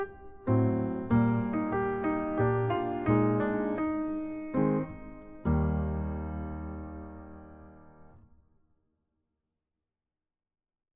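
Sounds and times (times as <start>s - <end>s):
piano: 0.0s - 8.4s.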